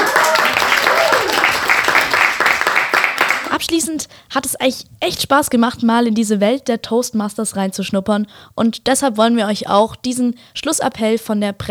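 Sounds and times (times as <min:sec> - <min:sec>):
audience applause: 0:00.0 - 0:03.6
speech: 0:03.6 - 0:11.6.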